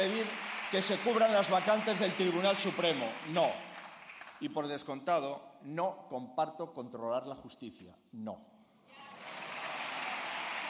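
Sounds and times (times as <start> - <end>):
speech: 0.0 - 3.7, 4.4 - 8.5
applause in a session of the Spanish parliament: 0.0 - 4.6, 8.9 - 10.6.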